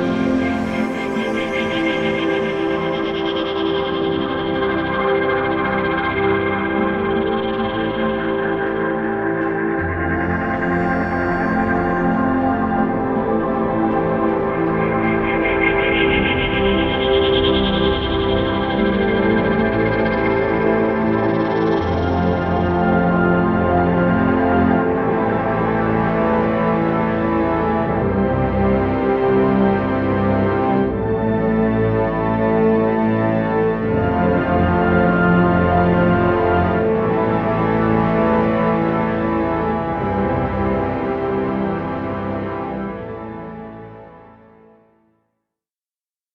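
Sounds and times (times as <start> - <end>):
ambient documentary music: 0.0 - 44.7.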